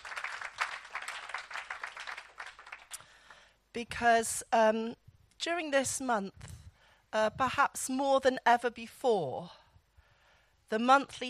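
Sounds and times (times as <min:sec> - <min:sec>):
audience clapping: 0:00.0 - 0:03.3
speech: 0:03.7 - 0:06.5, 0:07.1 - 0:09.6, 0:10.7 - 0:11.2.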